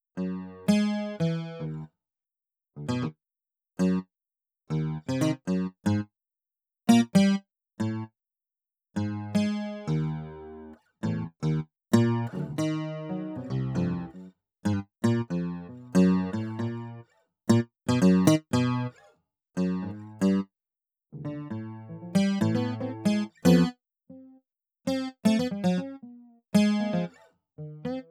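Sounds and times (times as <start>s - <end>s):
guitar: 0.2s - 1.9s, 2.8s - 3.2s, 3.8s - 4.1s, 4.7s - 6.1s, 6.9s - 8.1s, 9.0s - 20.5s, 21.1s - 28.0s.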